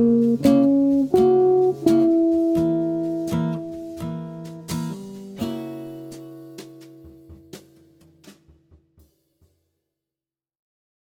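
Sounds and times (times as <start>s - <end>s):
high jazz guitar arpeggios over a major ii V7 I progression: 0.0s - 7.7s.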